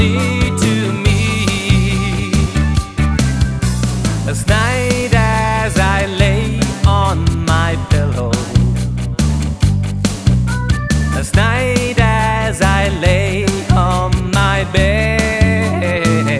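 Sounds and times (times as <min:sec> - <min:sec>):
folk song melody to play along: 0:00.0 - 0:16.3.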